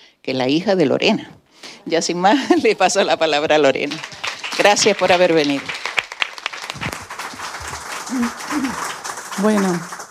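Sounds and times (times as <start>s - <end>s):
speech: 0.2s - 5.8s, 9.4s - 10.0s
audience applause: 3.8s - 10.0s
faint voices murmuring: 7.6s - 10.0s.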